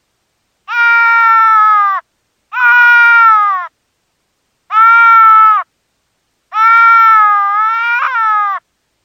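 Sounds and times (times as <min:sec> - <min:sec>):
deer fawn distress call: 0:00.7 - 0:03.7, 0:04.7 - 0:05.7, 0:06.5 - 0:08.6.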